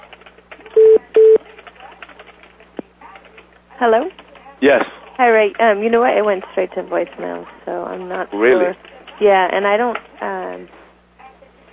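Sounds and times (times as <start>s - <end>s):
faint sounds: 0.1s - 11.7s
phone keypad tones dialing a number: 0.8s - 1.4s
speech: 3.8s - 10.8s.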